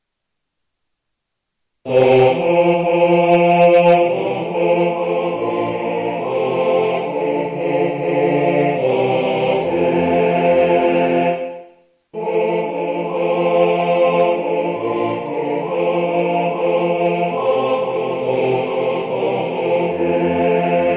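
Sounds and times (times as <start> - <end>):
choir singing: 1.9 - 20.9.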